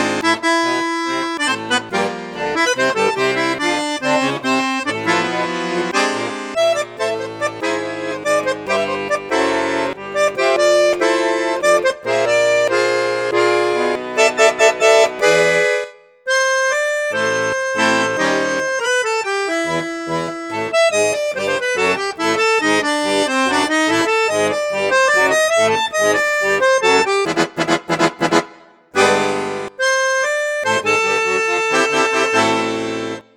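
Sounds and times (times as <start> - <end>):
Cavagnolo Virtuose 4 accordion on bassoon flute and piccolo registers: 0.0 - 33.3.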